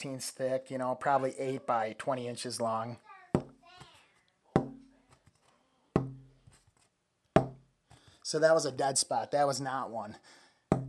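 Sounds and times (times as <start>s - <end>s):
speech: 0.0s - 3.1s, 8.3s - 10.8s
tapping thin cherry wood plate, ringing: 6.0s - 6.3s.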